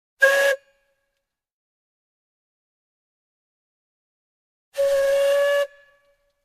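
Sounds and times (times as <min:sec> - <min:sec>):
steam tractor whistle, short and long: 0:00.2 - 0:00.8, 0:04.8 - 0:06.2.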